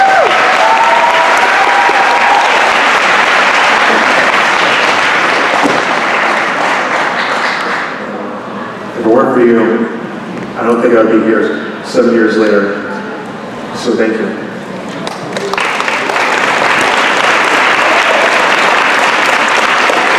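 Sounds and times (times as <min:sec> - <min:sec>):
round of applause: 0:00.0 - 0:08.0, 0:15.0 - 0:20.1
speech: 0:09.4 - 0:09.8, 0:10.7 - 0:12.7.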